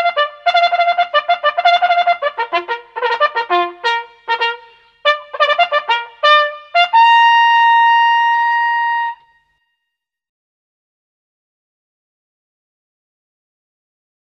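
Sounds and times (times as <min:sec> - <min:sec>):
hunting horn blowing: 0:00.0 - 0:09.4.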